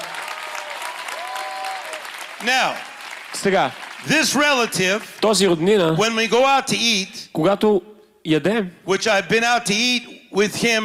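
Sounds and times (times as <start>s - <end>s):
audience clapping: 0.0s - 5.6s
speech: 2.4s - 10.8s.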